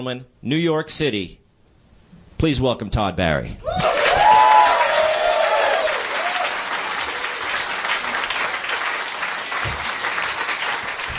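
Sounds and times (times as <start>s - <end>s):
speech: 0.0s - 1.4s, 2.4s - 3.8s
audience applause for a comedian taking the stage at a New York City show: 3.8s - 11.1s.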